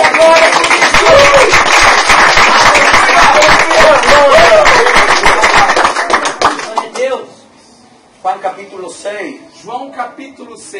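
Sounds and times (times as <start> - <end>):
audience clapping: 0.0 - 7.1.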